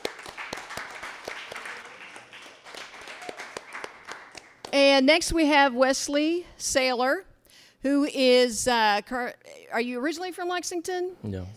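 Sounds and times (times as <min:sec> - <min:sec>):
audience applause: 0:00.0 - 0:04.7
speech: 0:04.8 - 0:11.5.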